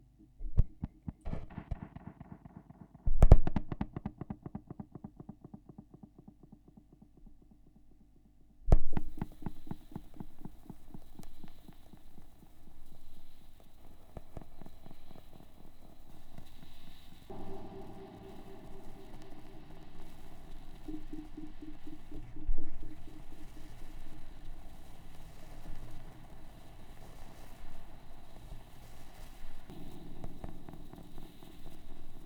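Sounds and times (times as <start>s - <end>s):
vinyl record noise: 0.4s - 4.2s, 8.8s - 32.2s
tape echo effect: 17.3s - 24.8s.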